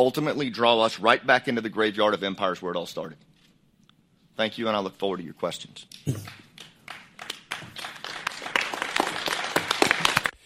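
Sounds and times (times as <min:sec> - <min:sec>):
speech: 0:00.0 - 0:03.3, 0:04.4 - 0:06.4
applause at end of testimony: 0:06.1 - 0:10.4.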